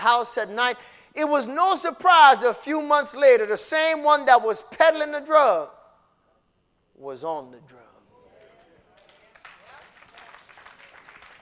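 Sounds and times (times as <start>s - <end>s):
speech: 0.0s - 5.8s, 7.0s - 7.8s
hand claps: 8.6s - 11.4s.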